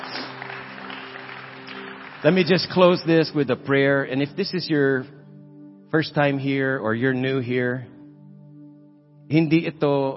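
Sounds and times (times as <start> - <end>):
audience clapping hands in praise: 0.0 - 3.6
speech: 2.2 - 5.2, 5.9 - 8.0, 9.3 - 10.1.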